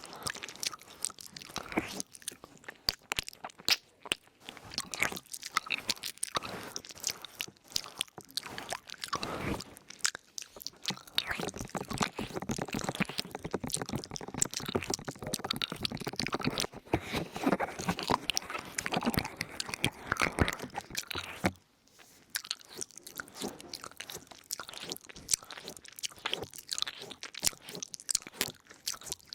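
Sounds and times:
ear noms crackly chewing mouth sounds: 0.0 - 29.3
brushing clicks and scrapes: 16.5 - 28.5.

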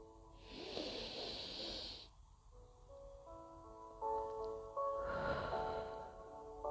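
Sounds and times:
gentle sustained music: 0.0 - 6.6
breathing in through the nose during a guided breathing exercise: 0.4 - 2.1, 5.0 - 6.1.

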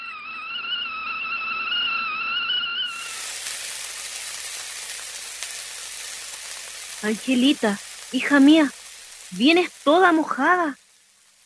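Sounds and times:
wavering sustained high tone: 0.0 - 3.0
rain falling: 2.9 - 11.4
speech: 7.0 - 10.8.

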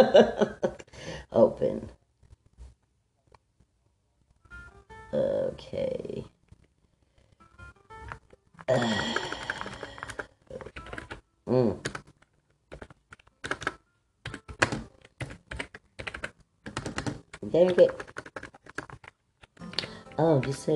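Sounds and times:
speech: 0.0 - 2.0, 5.1 - 6.3, 8.7 - 9.4, 11.5 - 12.0, 17.5 - 18.1, 20.2 - 20.7
person sighing: 0.9 - 1.4, 8.7 - 10.7, 11.5 - 11.9
typing on a computer keyboard while writing a report: 8.1 - 11.2, 11.8 - 20.6.

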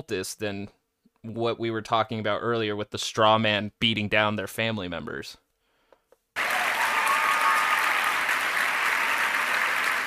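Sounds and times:
speech: 0.0 - 5.4
large crowd applauding: 6.4 - 10.0.

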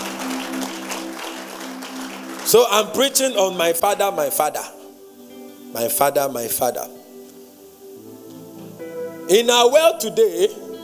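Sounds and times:
audience clapping: 0.0 - 3.4
speech: 2.5 - 4.8, 5.7 - 7.0, 9.3 - 10.6.

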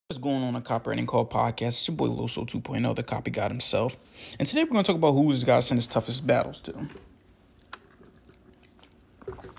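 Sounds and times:
speech: 0.1 - 7.1
person drinking water: 7.4 - 9.5.

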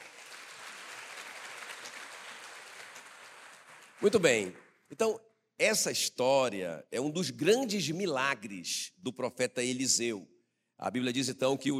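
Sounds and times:
audience applause: 0.0 - 4.6
speech: 4.0 - 11.7.

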